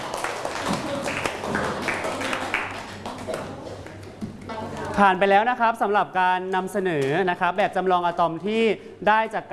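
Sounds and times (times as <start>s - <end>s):
classroom applause: 0.0s - 4.2s
speech: 5.0s - 9.5s.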